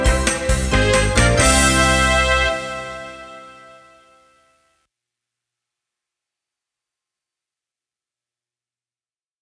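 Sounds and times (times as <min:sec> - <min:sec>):
full solo performance: 0:00.0 - 0:04.2.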